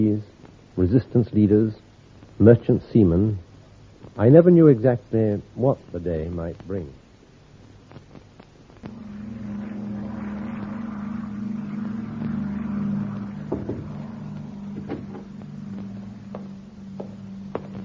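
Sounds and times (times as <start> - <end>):
speech: 0.0 - 1.8, 2.4 - 3.4, 4.2 - 7.0
propeller aircraft engine droning: 8.8 - 17.8.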